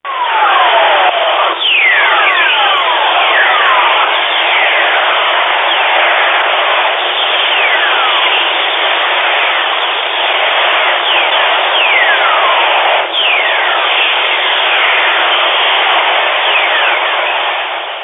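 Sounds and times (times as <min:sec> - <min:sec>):
recorded whistler waves in plasma: 0:00.1 - 0:18.0.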